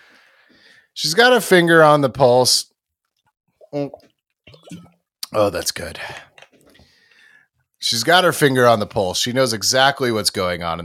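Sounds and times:
speech: 1.0 - 2.7, 3.7 - 4.1, 4.7 - 6.3, 7.8 - 10.8
sipping water: 3.5 - 5.4.

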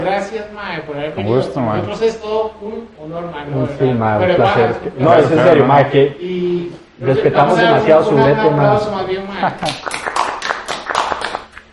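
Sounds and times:
speech: 0.0 - 10.1
laughter: 7.1 - 11.4
standing ovation applause: 9.6 - 11.6.

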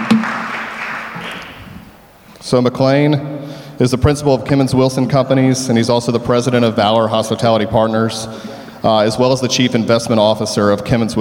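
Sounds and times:
audience applause: 0.0 - 1.9
speech: 2.5 - 11.2.

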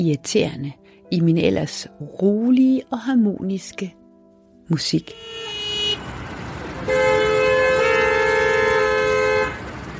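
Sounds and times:
speech: 0.0 - 4.0, 4.7 - 5.4
stuck Copenhagen car traffic: 5.0 - 9.9.

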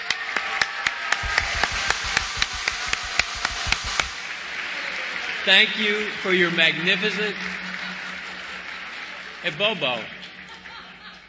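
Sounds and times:
audience applause: 0.0 - 11.2
speech: 5.5 - 7.6, 9.4 - 10.2
laughter: 6.7 - 11.2.

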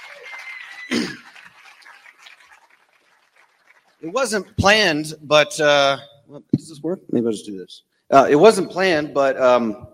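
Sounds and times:
audience applause: 0.0 - 4.2
speech: 4.0 - 9.9.

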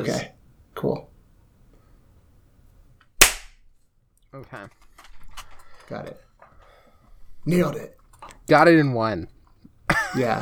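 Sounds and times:
speech: 0.0 - 1.1, 4.4 - 4.8, 5.9 - 6.2, 7.4 - 10.4
single hand clap for sync: 3.2 - 3.6.

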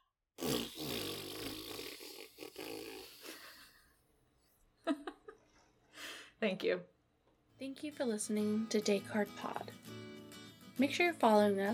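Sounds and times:
loud raspberry-style fart noise made with the mouth: 0.4 - 3.7
speech: 6.4 - 7.0, 7.6 - 10.0, 10.8 - 11.7.

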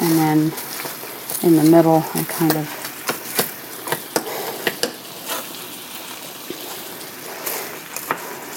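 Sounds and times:
food sizzling in an oiled cooking pan: 0.0 - 8.5
speech: 0.3 - 0.8, 1.4 - 2.8
utensil clicking against a cooking pan: 2.4 - 5.0.

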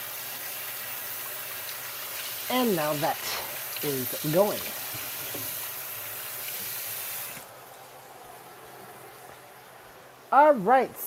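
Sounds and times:
food sizzling as it fries in a pan: 0.0 - 7.5
speech: 2.5 - 5.5, 10.3 - 11.0.

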